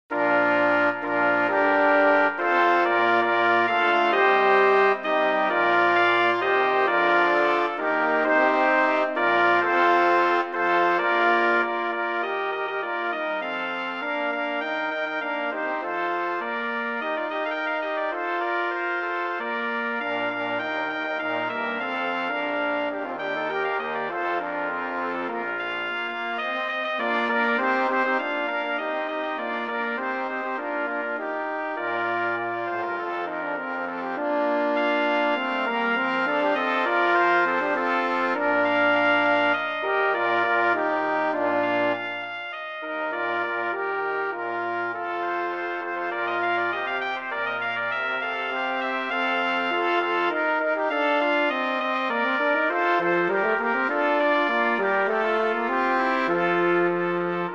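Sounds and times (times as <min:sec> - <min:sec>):
brass quintet: 0:00.1 - 0:57.5.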